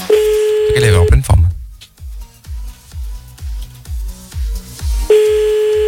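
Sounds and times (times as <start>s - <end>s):
telephone ringback tone while calling someone back: 0.1s - 1.2s, 5.1s - 5.8s.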